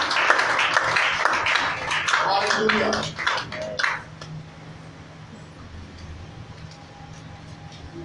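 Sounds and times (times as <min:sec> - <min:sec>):
audience clapping: 0:00.0 - 0:04.4
speech: 0:02.6 - 0:03.2.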